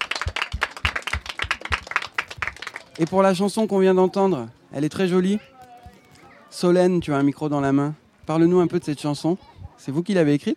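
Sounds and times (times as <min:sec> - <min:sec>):
audience clapping: 0:00.0 - 0:03.4
speech: 0:03.0 - 0:05.5, 0:06.6 - 0:10.5.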